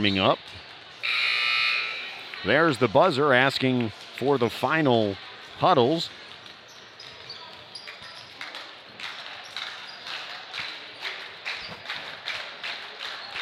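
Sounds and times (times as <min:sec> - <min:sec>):
speech: 0:00.0 - 0:01.3, 0:02.4 - 0:06.2
student section clapping in gym: 0:08.4 - 0:13.4.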